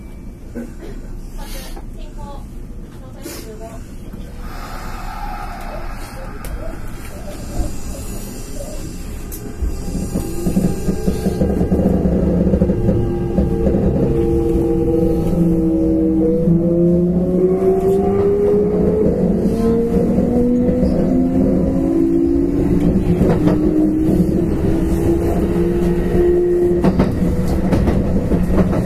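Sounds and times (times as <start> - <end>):
Nara Line express train rumbling: 0.0 - 28.8
Nara Line express train clicks and knocks: 6.4 - 14.6, 22.7 - 28.8.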